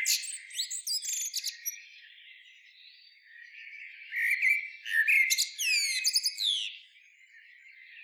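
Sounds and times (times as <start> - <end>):
common blackbird Turdus merula singing: 0.0 - 8.0.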